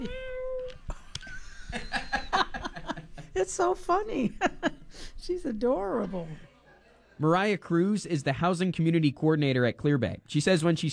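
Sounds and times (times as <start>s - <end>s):
cat meowing: 0.0s - 0.8s
laughter: 1.2s - 3.3s
speech: 3.4s - 6.5s, 7.2s - 10.9s.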